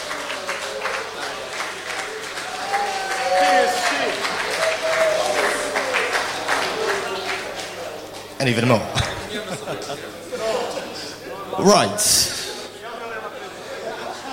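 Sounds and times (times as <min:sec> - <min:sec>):
audience clapping: 0:00.0 - 0:09.8
faint murmuring voices: 0:00.0 - 0:14.3
laughter: 0:03.6 - 0:14.3
speech: 0:08.4 - 0:10.6, 0:11.6 - 0:12.3.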